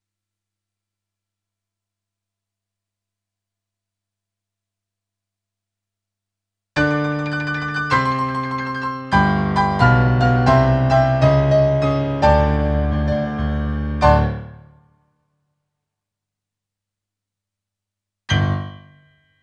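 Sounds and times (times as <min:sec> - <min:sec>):
rock and roll piano: 0:06.8 - 0:14.7.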